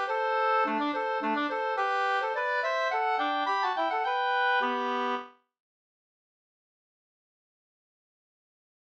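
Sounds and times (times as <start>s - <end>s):
two-part slangpolska: 0.0s - 5.3s.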